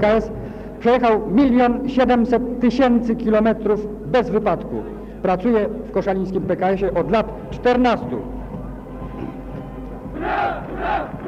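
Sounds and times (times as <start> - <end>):
speech: 0.0 - 8.4
crowd roaring at parade: 10.0 - 11.2.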